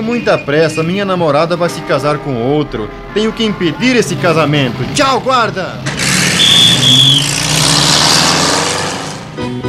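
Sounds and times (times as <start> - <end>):
speech: 0.0 - 7.5
car engine revving at full power as the car speeds off down a road: 4.0 - 9.6.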